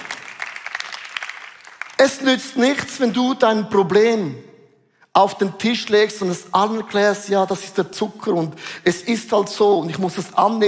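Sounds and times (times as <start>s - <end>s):
audience applause: 0.0s - 2.0s
speech: 2.0s - 4.5s, 5.2s - 10.6s.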